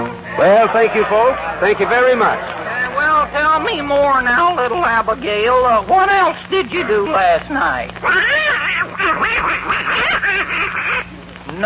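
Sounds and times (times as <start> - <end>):
laughter: 0.2 - 4.8, 8.3 - 11.1
speech: 0.4 - 2.6, 3.2 - 10.7
voice imitating duck quacks: 8.0 - 11.1.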